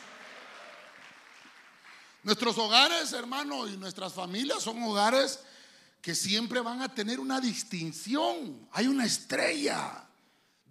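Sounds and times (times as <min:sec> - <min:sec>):
audience clapping loudly: 0:00.0 - 0:03.0
speech: 0:02.2 - 0:10.1.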